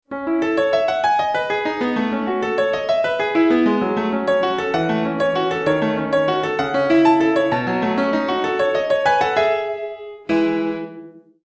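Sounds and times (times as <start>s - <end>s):
piano: 0.0s - 11.4s.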